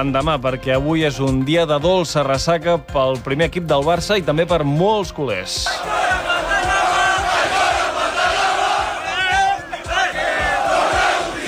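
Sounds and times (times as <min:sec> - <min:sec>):
speech: 0:00.0 - 0:06.2
football fans chanting at Plaça Catalunya: 0:05.7 - 0:11.4.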